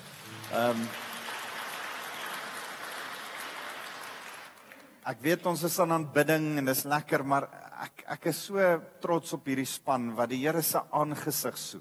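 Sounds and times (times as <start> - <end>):
audience hand clapping: 0.0 - 5.0
speech: 0.5 - 1.1, 5.0 - 11.7.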